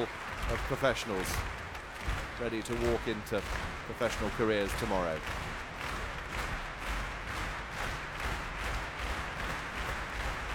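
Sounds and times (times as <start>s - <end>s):
speech: 0.0s - 5.5s
concert audience applause at the Royal Albert Hall calling for an encore: 0.0s - 10.5s.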